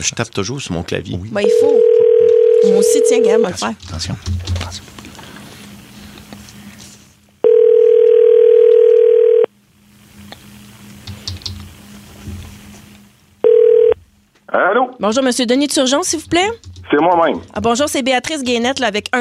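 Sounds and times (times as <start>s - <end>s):
speech: 0.0s - 4.9s, 15.0s - 19.1s
telephone tone while placing a call: 1.4s - 3.4s, 7.4s - 9.5s, 13.4s - 14.0s.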